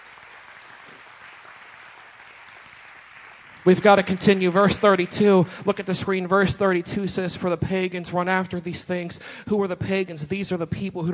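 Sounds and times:
audience hand clapping: 0:00.0 - 0:06.3
speech: 0:03.6 - 0:11.1.

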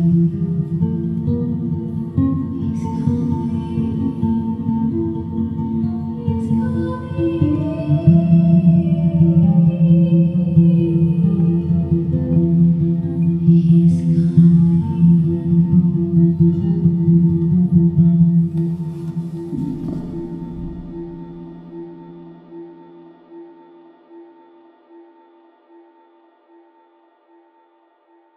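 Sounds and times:
vocals: 0:00.0 - 0:22.3
guitar: 0:00.0 - 0:25.3.

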